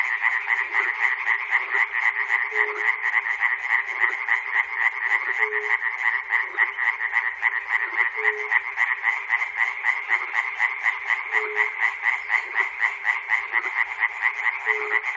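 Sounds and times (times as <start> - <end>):
frogs in Chernobyl: 0.0 - 15.1.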